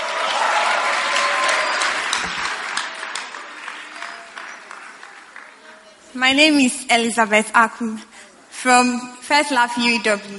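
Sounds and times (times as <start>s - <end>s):
church congregation applauding to welcome a testimony: 0.0s - 6.0s
speech: 6.2s - 10.3s.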